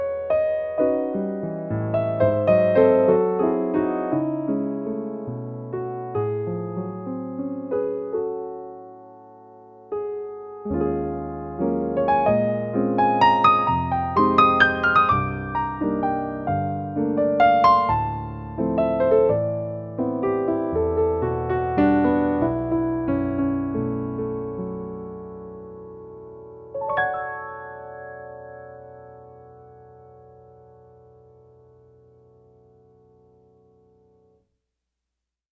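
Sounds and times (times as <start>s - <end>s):
vintage piano: 0.0s - 34.4s.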